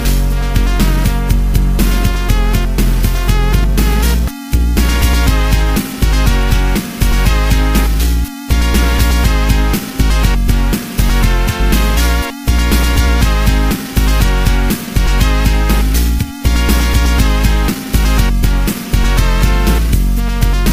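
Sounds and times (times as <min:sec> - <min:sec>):
remix ringtone: 0:00.5 - 0:20.7.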